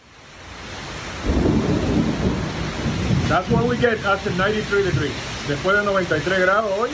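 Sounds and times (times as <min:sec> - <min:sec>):
rain in summer storm in Orlando: 0:00.0 - 0:06.9
thunder in summer storm in Orlando: 0:01.2 - 0:05.2
speech: 0:03.3 - 0:06.9.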